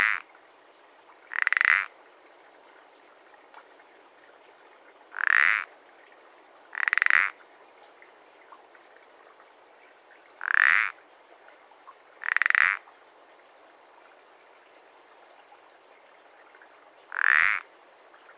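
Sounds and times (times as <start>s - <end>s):
common parsley frog croaking: 0.0s - 0.2s, 1.3s - 1.9s, 5.1s - 5.7s, 6.7s - 7.4s, 10.4s - 11.0s, 12.2s - 12.8s, 17.1s - 17.6s
low steady hiss: 0.0s - 18.3s.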